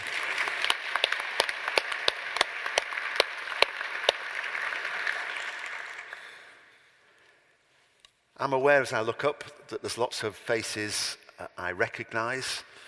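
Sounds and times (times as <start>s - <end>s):
audience applauding the choir: 0.0s - 6.6s
speech: 8.4s - 12.7s.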